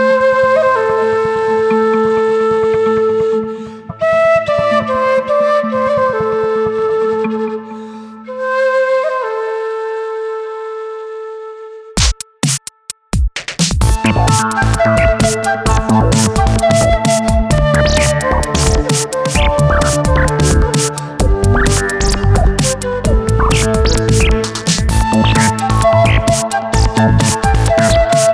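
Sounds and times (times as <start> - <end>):
quena flute: 0.0 - 13.1, 13.8 - 28.3.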